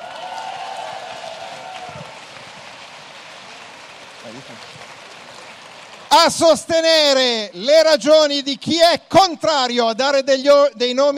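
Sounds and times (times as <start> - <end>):
audience applause: 0.0 - 7.4
speech: 4.2 - 5.0, 6.1 - 11.1.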